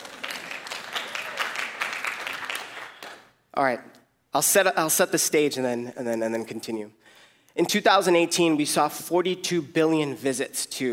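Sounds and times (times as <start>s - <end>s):
audience clapping: 0.0s - 3.4s
speech: 3.6s - 10.9s.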